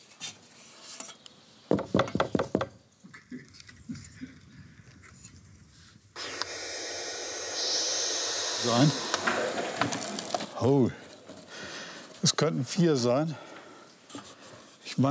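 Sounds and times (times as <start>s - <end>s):
sharp knocks on a wooden box: 1.7s - 2.8s
steady loud hiss: 6.2s - 14.2s
speech: 8.7s - 9.0s, 10.6s - 11.0s, 12.4s - 13.5s.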